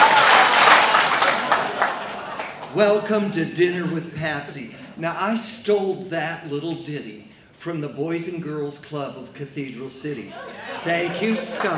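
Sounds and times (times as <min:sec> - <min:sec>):
audience clapping on cue: 0:00.0 - 0:03.2, 0:10.8 - 0:11.7
laughter: 0:00.0 - 0:05.0, 0:10.2 - 0:11.7
speech: 0:02.8 - 0:11.7.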